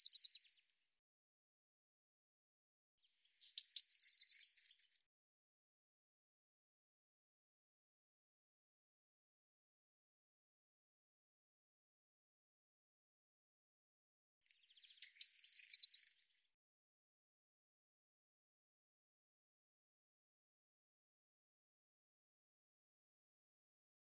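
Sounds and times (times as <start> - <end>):
bird singing: 0.0 - 0.5, 3.3 - 4.9, 14.5 - 16.1.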